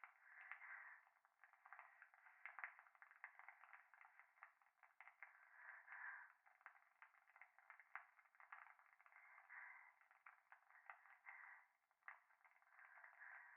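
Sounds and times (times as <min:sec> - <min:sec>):
fireplace crackling: 0:00.0 - 0:13.5
breathing close to the right ear in a bath: 0:00.1 - 0:02.7, 0:05.2 - 0:06.5, 0:09.1 - 0:13.5.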